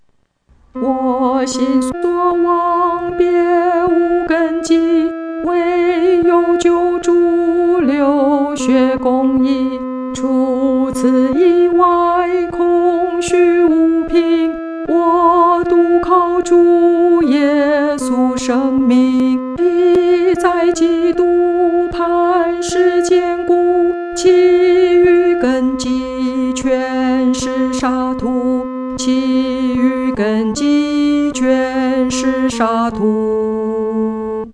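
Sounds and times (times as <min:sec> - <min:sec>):
solo singing, second voice: 0:00.7 - 0:34.5.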